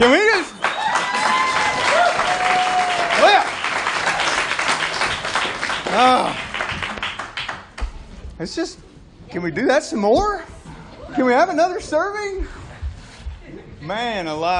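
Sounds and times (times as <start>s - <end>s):
audience applause: 0.5s - 7.8s
speech: 8.4s - 8.8s, 9.4s - 10.5s, 11.2s - 12.6s, 13.9s - 14.5s.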